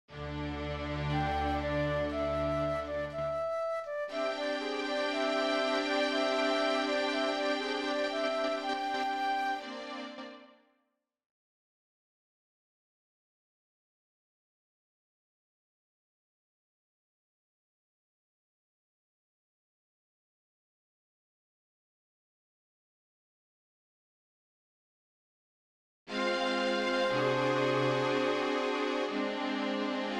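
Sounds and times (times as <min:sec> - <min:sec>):
flute: 0:00.4 - 0:10.6, 0:26.1 - 0:30.1.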